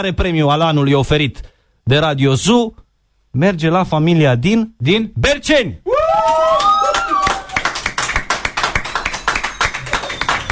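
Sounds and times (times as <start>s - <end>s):
speech: 0.0s - 6.6s
small group applauding: 6.0s - 10.5s.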